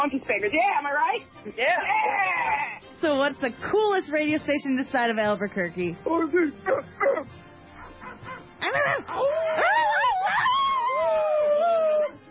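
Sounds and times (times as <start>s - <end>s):
speech: 0.0s - 7.4s, 8.7s - 9.6s
radio station staff imitating dogs barking: 6.6s - 12.3s
radio station staff howling like dogs with overlapping voices: 8.7s - 12.3s.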